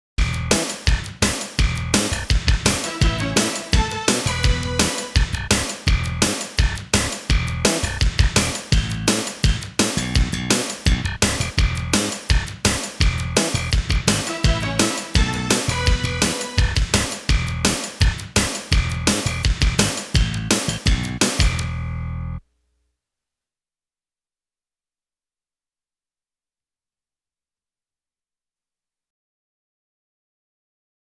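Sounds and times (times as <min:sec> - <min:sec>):
1980s groove music: 0:00.2 - 0:22.4.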